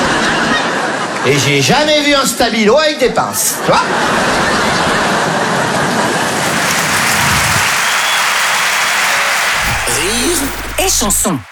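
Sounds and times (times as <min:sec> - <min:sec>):
laughter: 0:00.0 - 0:11.5
speech: 0:01.2 - 0:05.0, 0:10.1 - 0:11.5
audience applause: 0:03.9 - 0:11.5.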